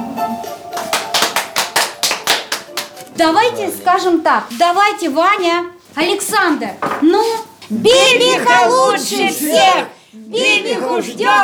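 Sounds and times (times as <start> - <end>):
audience clapping: 0.0 - 4.6
speech: 3.2 - 11.4.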